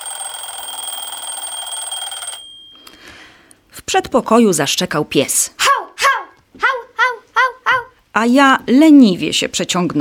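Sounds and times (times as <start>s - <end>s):
mechanical alarm clock bell ringing: 0.0s - 3.0s
speech: 3.9s - 5.6s, 8.2s - 9.9s.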